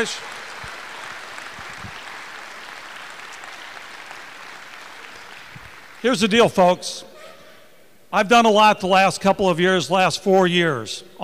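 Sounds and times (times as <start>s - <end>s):
speech: 0.0s - 0.4s, 6.0s - 7.1s, 8.1s - 11.2s
crowd applause: 0.0s - 6.1s.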